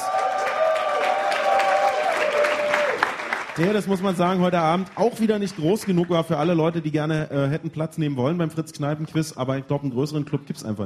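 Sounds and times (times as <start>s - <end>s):
audience applause: 0.0s - 6.7s
speech: 3.6s - 10.8s.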